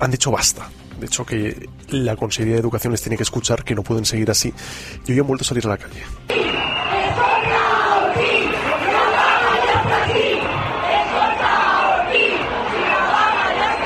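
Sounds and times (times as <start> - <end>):
speech: 0.0 - 6.6
crowd of protesting teachers shouting chants: 6.3 - 13.8.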